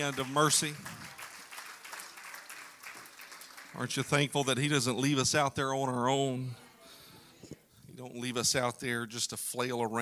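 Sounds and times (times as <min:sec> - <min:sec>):
speech: 0:00.0 - 0:01.0, 0:03.8 - 0:06.6, 0:08.0 - 0:09.9
audience clapping hands: 0:00.0 - 0:04.7.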